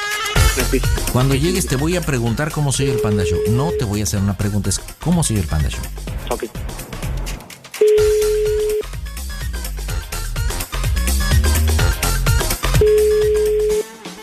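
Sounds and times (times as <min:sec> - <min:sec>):
loud busy music: 0:00.0 - 0:14.2
speech: 0:00.7 - 0:06.7
unanswered telephone ringing tones: 0:02.9 - 0:04.1, 0:07.8 - 0:08.8, 0:12.8 - 0:13.8.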